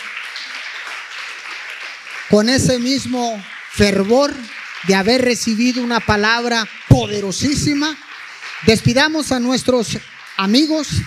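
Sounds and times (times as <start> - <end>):
crowd applauding: 0.0 - 11.0
speech: 2.3 - 8.0, 8.6 - 11.0.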